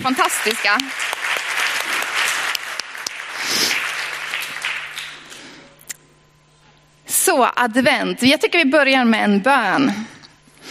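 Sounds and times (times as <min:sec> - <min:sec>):
speech: 0:00.0 - 0:01.2, 0:07.3 - 0:10.2
audience applause for the choir: 0:00.0 - 0:05.7.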